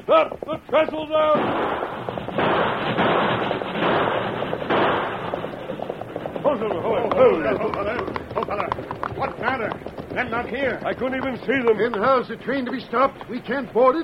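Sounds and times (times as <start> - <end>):
speech: 0.0 - 4.0, 6.5 - 14.0
warning gunshots: 1.2 - 7.6.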